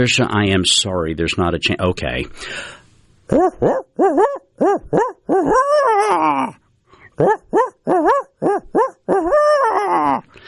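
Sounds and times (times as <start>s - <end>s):
speech: 0.0s - 6.6s, 7.2s - 10.4s
person imitating barred owl hoots: 3.3s - 10.3s.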